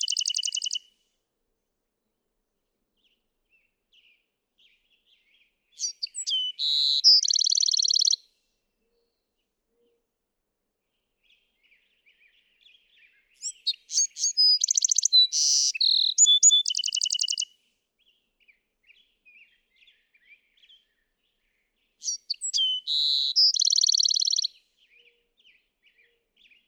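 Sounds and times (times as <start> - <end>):
Bewick's wren singing: 0.0 - 0.8, 5.8 - 8.2, 13.4 - 17.5, 22.0 - 24.5.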